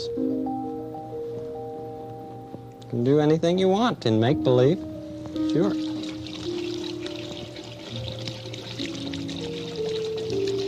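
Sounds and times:
speech: 0:02.9 - 0:05.9
tap water running while washing hands: 0:05.3 - 0:10.6.

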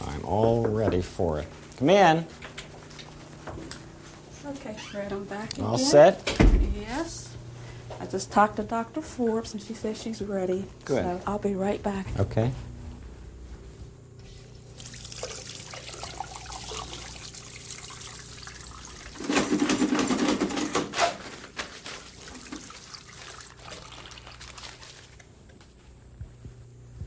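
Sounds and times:
speech: 0:00.3 - 0:02.5, 0:04.4 - 0:07.4, 0:08.0 - 0:12.7
hands washed under running water in a medical setting: 0:14.7 - 0:20.5, 0:21.9 - 0:25.2.

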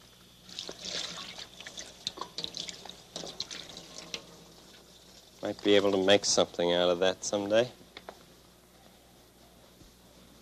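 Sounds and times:
water trickling and dripping as something is rinsed out: 0:00.5 - 0:05.4
speech: 0:05.4 - 0:07.8.

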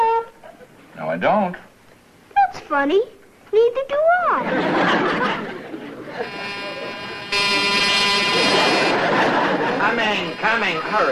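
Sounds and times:
speech: 0:01.2 - 0:01.7, 0:02.7 - 0:05.6, 0:09.8 - 0:11.1
laughter: 0:04.4 - 0:11.0
sticking doorbell being rung: 0:06.2 - 0:11.1.

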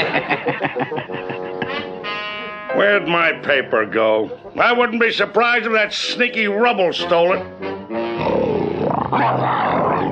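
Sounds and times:
laughter: 0:00.0 - 0:02.1
speech: 0:02.8 - 0:07.7, 0:09.1 - 0:09.6
saber-toothed cat growling: 0:07.9 - 0:10.1.

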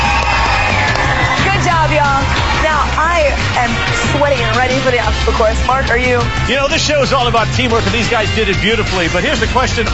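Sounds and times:
audience cheering: 0:00.0 - 0:05.1
speech: 0:03.1 - 0:09.9.

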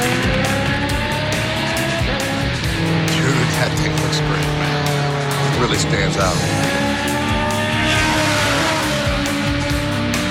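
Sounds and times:
Legend race car driving: 0:00.0 - 0:10.2
speech: 0:05.7 - 0:06.9
tire squeal: 0:07.6 - 0:09.7.

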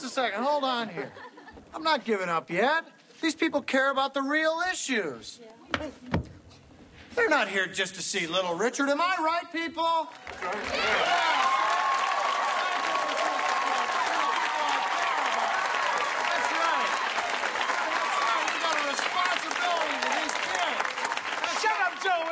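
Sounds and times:
laughter: 0:00.0 - 0:01.8
speech: 0:00.2 - 0:06.3, 0:07.2 - 0:11.6
audience cheering and applause: 0:10.2 - 0:22.3.

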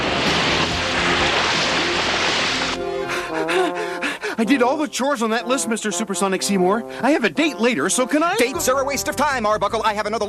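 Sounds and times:
water rinsing a shampooed carpet: 0:00.0 - 0:03.8
speech: 0:04.4 - 0:10.2.

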